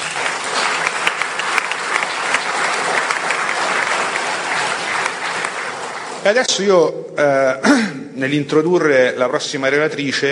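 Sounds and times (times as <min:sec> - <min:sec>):
audience applause: 0:00.0 - 0:06.8
speech: 0:06.2 - 0:10.3.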